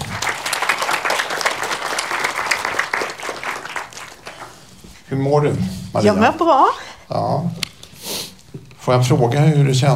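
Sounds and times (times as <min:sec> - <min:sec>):
audience applause: 0:00.0 - 0:04.8
speech: 0:05.1 - 0:07.6, 0:08.8 - 0:09.9.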